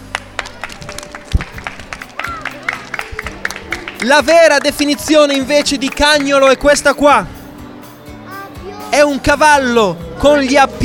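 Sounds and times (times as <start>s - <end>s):
audience applause: 0.0s - 6.6s
speech: 4.0s - 7.4s, 8.9s - 10.8s.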